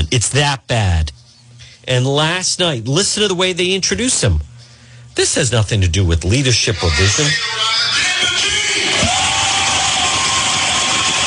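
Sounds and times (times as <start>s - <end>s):
speech: 0.1s - 1.2s, 1.8s - 4.5s, 5.2s - 8.4s
audience applauding: 8.8s - 11.2s.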